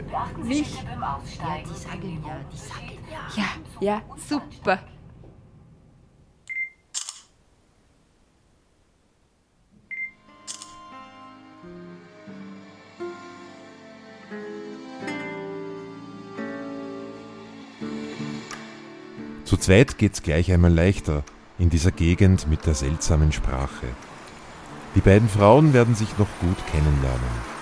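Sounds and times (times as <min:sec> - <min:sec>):
speech: 0:00.1 - 0:04.9, 0:19.6 - 0:24.1, 0:25.0 - 0:27.6
camera shutter clicking: 0:06.9 - 0:07.4, 0:10.5 - 0:10.8
soft music: 0:10.0 - 0:27.6.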